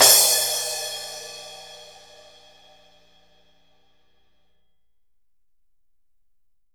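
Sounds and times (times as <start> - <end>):
14-inch crash cymbal played fortissimo: 0.0 - 3.1.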